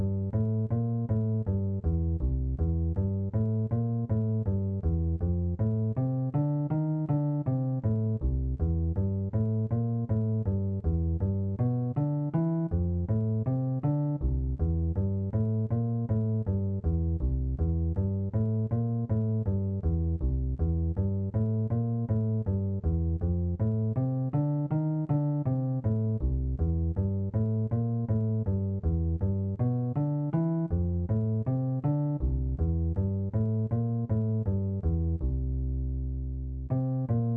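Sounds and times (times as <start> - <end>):
bass guitar: 0.0 - 37.3.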